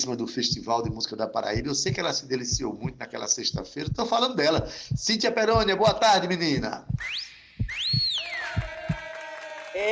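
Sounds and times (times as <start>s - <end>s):
speech: 0.0s - 7.8s, 9.8s - 9.9s
soft rhythmic low thumps: 0.4s - 9.0s
person whistling sliding swooping notes: 7.0s - 8.8s.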